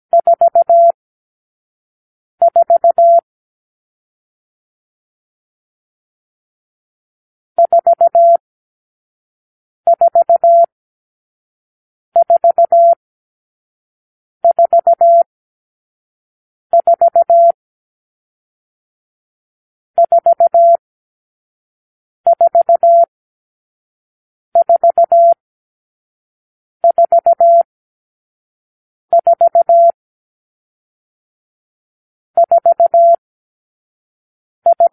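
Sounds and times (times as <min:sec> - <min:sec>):
morse code beeps: 0:00.2 - 0:01.0, 0:02.4 - 0:03.2, 0:07.6 - 0:08.4, 0:09.9 - 0:10.7, 0:12.2 - 0:13.0, 0:14.4 - 0:15.3, 0:16.8 - 0:17.6, 0:20.0 - 0:20.8, 0:22.3 - 0:23.1, 0:24.6 - 0:25.4, 0:26.8 - 0:27.7, 0:29.1 - 0:30.0, 0:32.4 - 0:33.2, 0:34.7 - 0:34.9.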